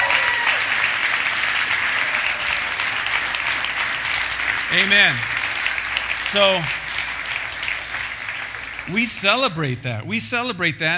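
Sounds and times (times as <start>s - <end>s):
crowd clapping: 0.0s - 10.0s
speech: 4.7s - 5.3s, 6.3s - 6.8s, 8.9s - 10.9s.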